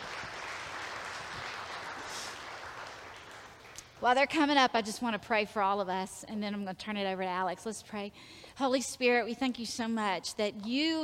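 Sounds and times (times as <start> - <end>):
audience applause: 0.0 - 4.0
speech: 4.0 - 11.0.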